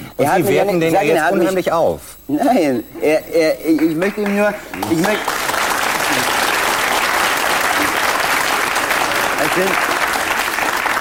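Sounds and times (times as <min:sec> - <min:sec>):
speech: 0:00.2 - 0:05.4, 0:09.4 - 0:09.9
audience applause: 0:03.8 - 0:10.9.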